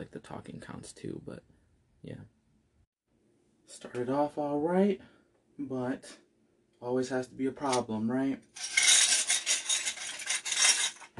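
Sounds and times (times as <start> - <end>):
speech: 0.0 - 2.4, 3.7 - 6.2, 6.8 - 8.8
broken glass scraping and crunching: 8.6 - 11.1.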